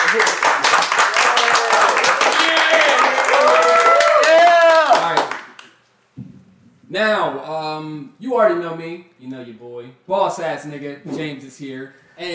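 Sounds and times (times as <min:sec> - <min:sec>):
small audience clapping: 0:00.0 - 0:05.8
speech: 0:00.1 - 0:00.5, 0:07.0 - 0:12.3.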